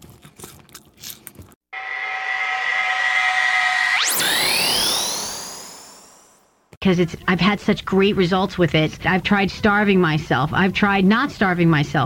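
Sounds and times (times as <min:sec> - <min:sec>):
person crunching snacks: 0:00.0 - 0:01.6
electronic tone: 0:01.8 - 0:06.4
speech: 0:06.8 - 0:12.0.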